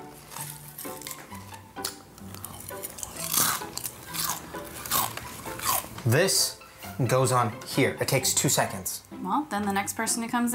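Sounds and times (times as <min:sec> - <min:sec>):
loud chewing and crunching: 0:00.1 - 0:06.2
speech: 0:06.1 - 0:10.5.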